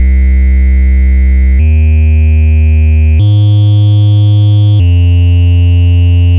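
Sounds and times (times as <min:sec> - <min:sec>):
NES chiptune bass: 0:00.0 - 0:06.3.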